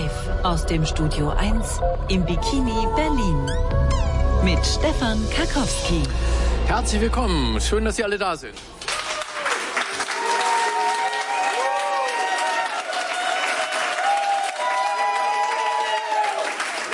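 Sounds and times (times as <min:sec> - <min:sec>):
speech: 0:00.4 - 0:08.8
studio audience applause at a live radio show in Berlin: 0:08.7 - 0:16.9.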